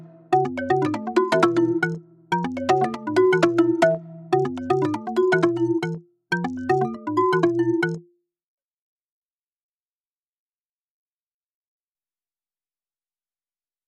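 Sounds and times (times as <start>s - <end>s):
underscore mallet arpeggios: 0.0s - 8.0s.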